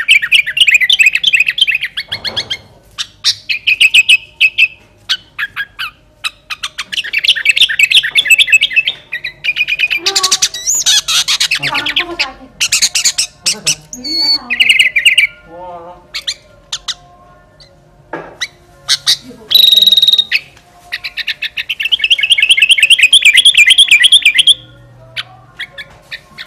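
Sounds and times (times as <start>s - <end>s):
sooty-headed bulbul song in fierce style: 0.0s - 26.4s.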